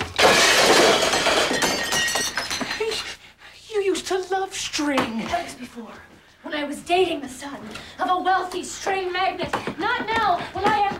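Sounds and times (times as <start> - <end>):
cup shattering: 0.0 - 3.0
speech: 4.5 - 10.9.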